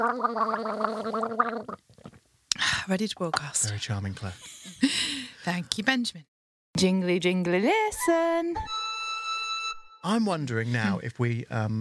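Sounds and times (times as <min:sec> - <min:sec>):
speech: 0:00.0 - 0:02.0, 0:02.6 - 0:08.8, 0:10.0 - 0:11.7
person gargling: 0:00.0 - 0:02.2.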